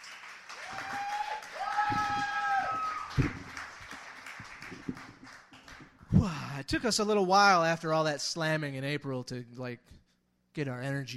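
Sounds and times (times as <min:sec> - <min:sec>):
audience clapping: 0:00.0 - 0:06.1
audience cheering and whooping: 0:00.5 - 0:03.6
high shouts or whistles: 0:00.6 - 0:03.2
speech: 0:06.7 - 0:10.0, 0:10.6 - 0:11.1.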